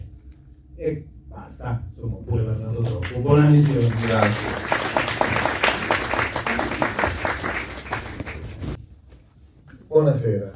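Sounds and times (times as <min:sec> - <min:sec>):
speech: 0:00.8 - 0:04.8, 0:10.0 - 0:10.5
audience applause after a film screening: 0:02.8 - 0:08.8.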